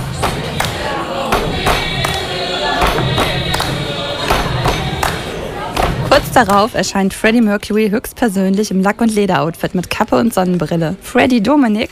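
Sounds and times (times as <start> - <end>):
crowd stamping and clapping along: 0.0 - 6.7
speech: 6.4 - 11.8.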